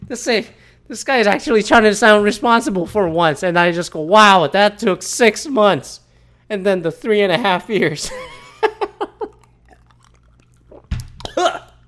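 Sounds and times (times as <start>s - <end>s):
speech: 0.1s - 9.0s
person choking and coughing on water: 8.1s - 11.8s.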